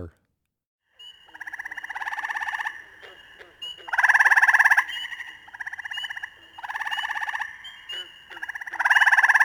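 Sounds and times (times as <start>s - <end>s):
Gray treefrog pulsed trill calls: 0.9s - 9.4s.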